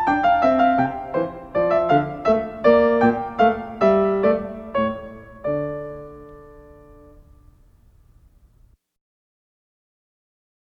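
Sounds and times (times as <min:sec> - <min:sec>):
minuet in D minor: 0:00.0 - 0:08.6.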